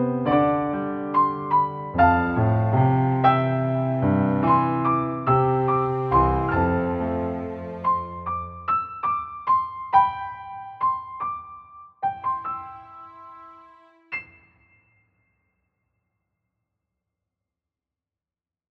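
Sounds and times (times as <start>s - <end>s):
instrumental entrance music: 0.0s - 14.8s.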